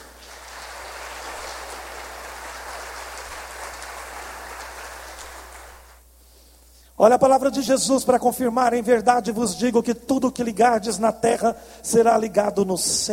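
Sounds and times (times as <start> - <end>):
audience applause: 0.0 - 6.0
speech: 7.0 - 13.1.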